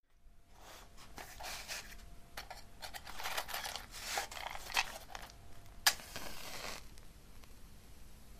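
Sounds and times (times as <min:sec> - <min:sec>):
matches and candle: 0:00.6 - 0:06.9.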